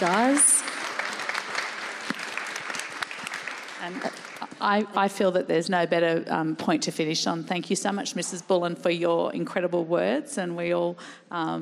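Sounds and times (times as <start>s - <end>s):
speech: 0.0s - 0.6s, 3.8s - 11.6s
audience applause for a panel of artists and curators: 0.0s - 4.6s.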